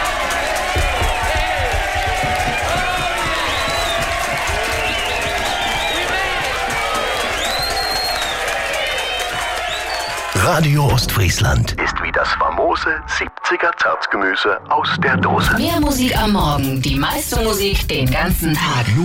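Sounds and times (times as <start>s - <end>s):
audience applause: 0.0s - 11.3s
speech: 10.5s - 19.0s.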